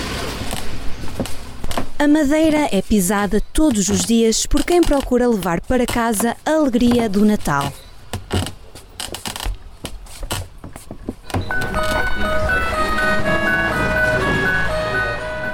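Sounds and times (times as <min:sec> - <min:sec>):
speech: 0:02.0 - 0:08.5
wind-up music box playing a melody: 0:11.4 - 0:15.5.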